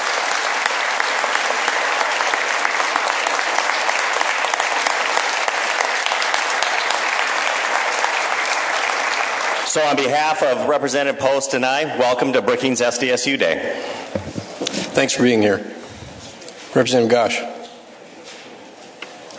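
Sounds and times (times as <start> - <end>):
audience round of applause: 0.0 - 10.1
speech: 9.8 - 14.0, 15.0 - 15.8, 16.7 - 17.5.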